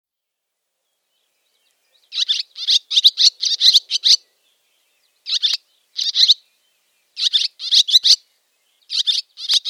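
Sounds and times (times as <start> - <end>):
barn swallow giving chattering twitter of high chirps: 1.9 - 4.3, 5.2 - 6.4, 7.2 - 8.2, 8.9 - 9.6.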